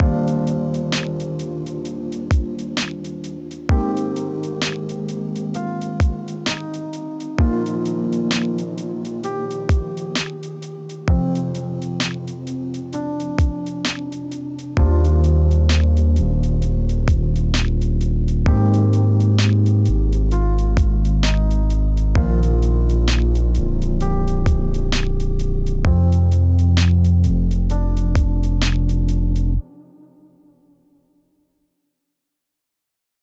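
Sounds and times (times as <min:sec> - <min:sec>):
lo-fi music: 0:00.0 - 0:29.9.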